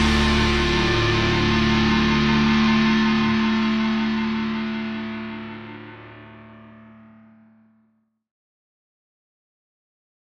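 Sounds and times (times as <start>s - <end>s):
guitar: 0.0s - 8.1s.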